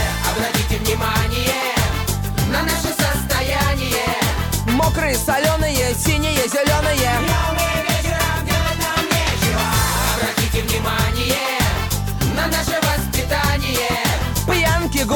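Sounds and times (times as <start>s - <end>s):
music loop: 0.0s - 15.1s.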